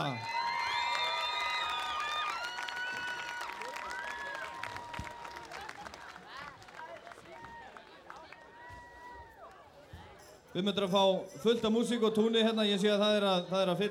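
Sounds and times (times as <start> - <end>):
audience clapping: 0.0 - 8.6
speech: 10.6 - 13.8.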